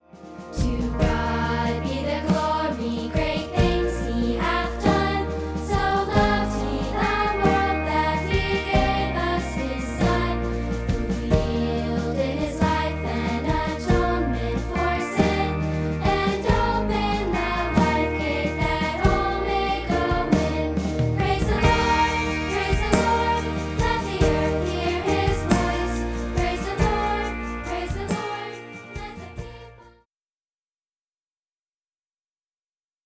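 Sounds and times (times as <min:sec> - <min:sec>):
musical instruments playing: 0:00.0 - 0:29.8.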